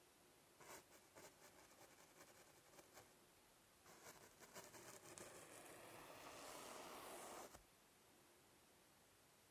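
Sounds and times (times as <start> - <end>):
sketching: 0.6 - 3.1, 3.9 - 7.6.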